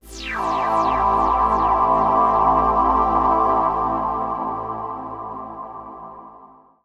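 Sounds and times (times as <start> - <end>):
techno pad at 140 bpm: 0.0 - 6.5.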